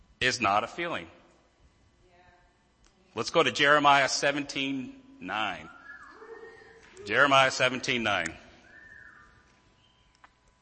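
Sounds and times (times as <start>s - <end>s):
speech: 0.2s - 1.2s, 3.2s - 5.8s, 7.0s - 8.4s
whistling: 5.6s - 6.8s, 8.6s - 10.2s.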